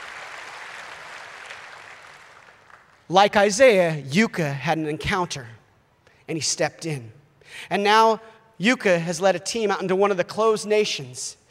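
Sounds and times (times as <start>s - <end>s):
crowd clapping: 0.0s - 3.1s
speech: 3.1s - 5.6s, 6.3s - 11.4s.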